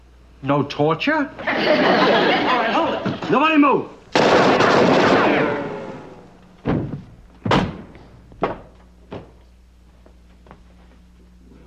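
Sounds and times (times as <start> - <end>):
speech: 0.4 - 5.0
laughter: 1.4 - 3.4
gunshots: 4.1 - 6.2.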